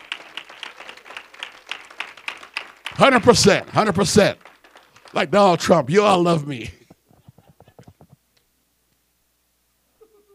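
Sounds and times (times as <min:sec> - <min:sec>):
audience clapping: 0:00.0 - 0:08.1
speech: 0:03.0 - 0:04.5, 0:05.1 - 0:06.8.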